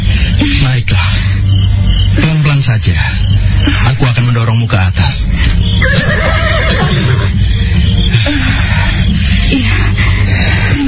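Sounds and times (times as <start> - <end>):
low rumble: 0.0 - 10.8
speech: 2.7 - 7.3
horse neighing: 5.8 - 7.4.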